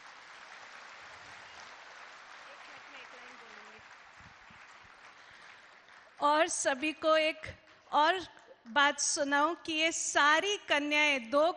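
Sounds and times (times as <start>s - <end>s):
audience applause: 0.0s - 6.2s
speech: 6.2s - 11.5s.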